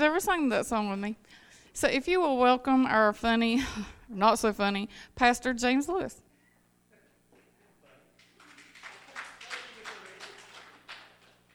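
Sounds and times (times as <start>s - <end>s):
speech: 0.0s - 6.2s
excited clapping: 8.2s - 11.5s.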